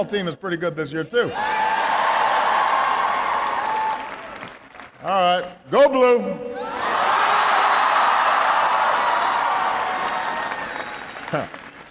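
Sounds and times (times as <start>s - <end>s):
speech: 0.0s - 1.7s, 5.0s - 6.7s, 11.3s - 11.6s
scattered cheers: 1.2s - 4.9s, 6.6s - 11.8s
large audience applauding loudly: 1.8s - 5.2s, 7.0s - 11.8s.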